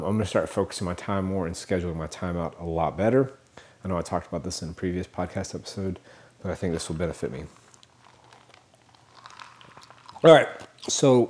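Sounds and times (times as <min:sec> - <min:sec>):
speech: 0:00.0 - 0:07.6, 0:10.2 - 0:11.2
chewing ice: 0:06.8 - 0:11.2.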